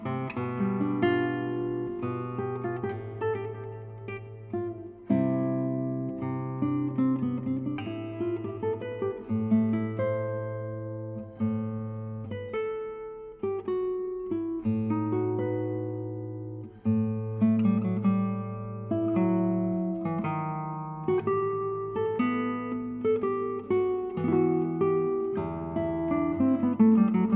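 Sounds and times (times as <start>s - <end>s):
fast classical guitar piece in A minor: 0.0s - 27.3s.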